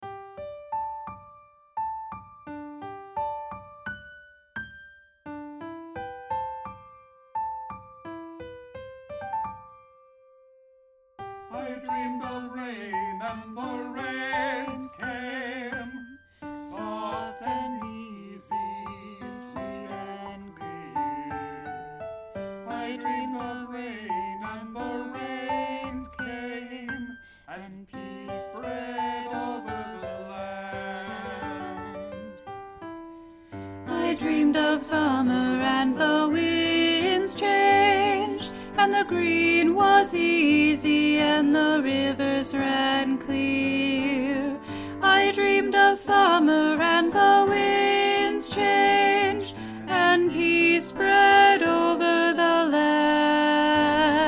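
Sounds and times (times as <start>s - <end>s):
soprano singing: 11.4s - 32.7s, 33.6s - 54.2s.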